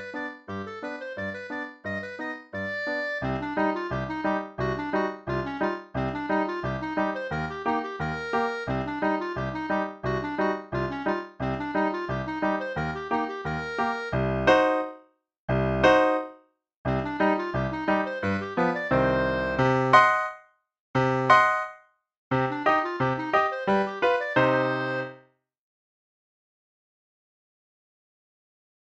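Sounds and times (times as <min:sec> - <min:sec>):
clarinet solo: 0:00.0 - 0:14.9, 0:16.9 - 0:20.4, 0:21.0 - 0:25.2.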